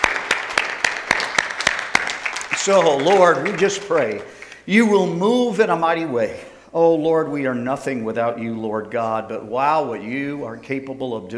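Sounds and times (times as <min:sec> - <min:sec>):
congregation clapping hands at a church service: 0:00.0 - 0:05.1
speech: 0:02.6 - 0:11.3.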